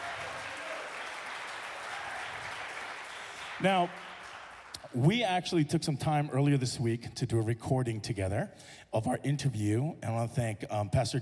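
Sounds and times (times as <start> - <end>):
audience applause: 0.0 - 5.0
speech: 3.6 - 4.2, 4.9 - 11.2.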